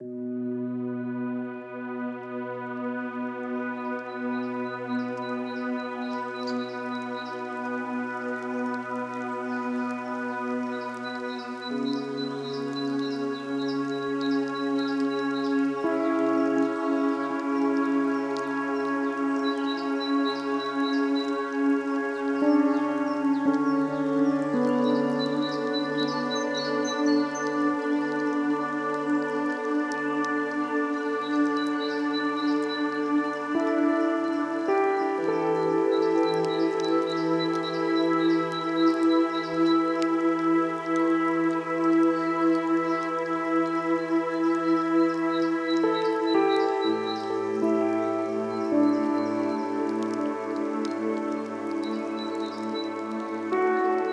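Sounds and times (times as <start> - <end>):
rain: 0.0 - 54.1.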